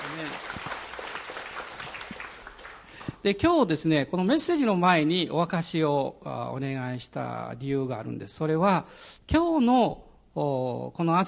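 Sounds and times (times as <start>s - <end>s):
applause from a church congregation: 0.0s - 3.2s
speech: 3.2s - 11.2s.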